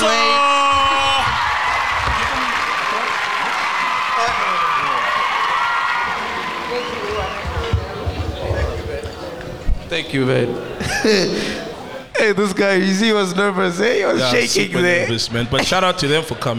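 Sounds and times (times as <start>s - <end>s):
audience clapping and cheering: 0.0s - 9.5s
mixed voices shouting: 0.0s - 12.1s
laughter: 6.0s - 12.6s, 13.9s - 16.5s
speech: 10.0s - 11.6s, 12.2s - 16.5s.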